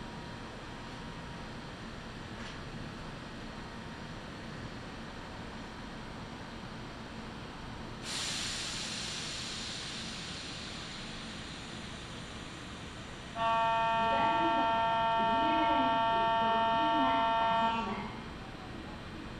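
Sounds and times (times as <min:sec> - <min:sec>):
sharp hiss: 0:08.1 - 0:12.6
Kintetsu Nagoya Line local train rumble: 0:08.1 - 0:19.3
voices: 0:13.4 - 0:19.2.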